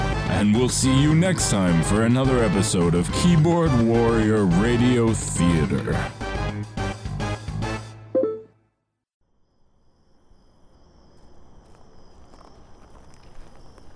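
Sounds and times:
speech: 0.4s - 6.8s
short musical phrase: 8.2s - 8.5s
faint insect-like hum: 9.2s - 13.9s
footsteps walking on gravel road: 11.2s - 13.9s.

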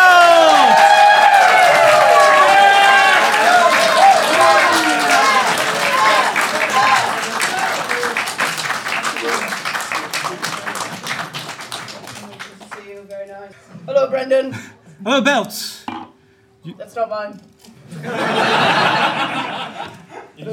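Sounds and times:
live audience whooping: 0.0s - 11.4s
live audience clapping: 0.0s - 13.4s
laughter: 2.7s - 12.5s, 17.8s - 20.5s
speech: 17.0s - 18.4s.

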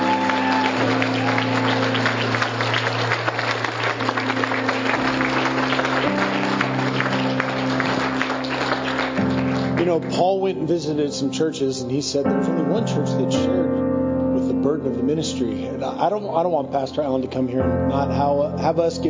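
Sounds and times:
audience applause: 0.0s - 10.2s
speech: 10.7s - 13.9s, 14.6s - 19.0s.

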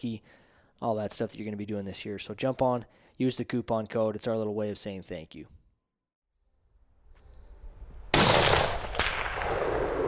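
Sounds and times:
speech: 0.0s - 5.6s
hunting rifle gunshot with rolling boom: 8.1s - 10.0s.

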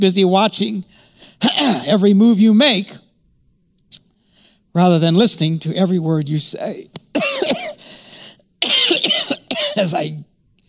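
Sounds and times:
speech: 0.0s - 3.0s, 4.8s - 7.6s, 9.8s - 10.3s
person coughing: 1.4s - 1.9s, 7.2s - 7.9s, 8.6s - 10.0s.

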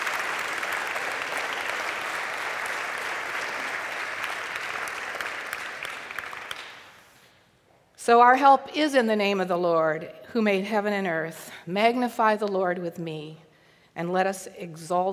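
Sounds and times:
church congregation applauding to welcome a new organist: 0.0s - 7.2s
speech: 8.0s - 13.4s, 14.0s - 15.1s.

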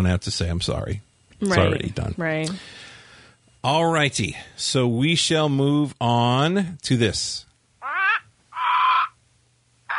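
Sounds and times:
speech: 0.0s - 2.9s, 3.6s - 7.5s
crow-like bird squawks: 7.8s - 9.2s.

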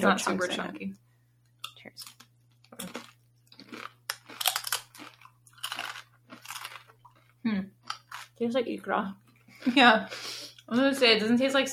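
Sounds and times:
speech: 0.0s - 1.0s, 1.8s - 2.2s, 2.8s - 3.1s, 7.4s - 7.8s, 8.4s - 11.7s
crunching on crisp tortilla chips: 2.0s - 8.4s.

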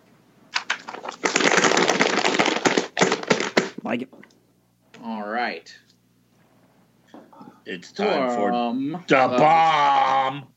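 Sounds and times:
paper being shaken, rustling and crackling: 0.6s - 3.8s
speech: 3.9s - 4.3s, 5.0s - 5.9s, 7.7s - 10.5s.

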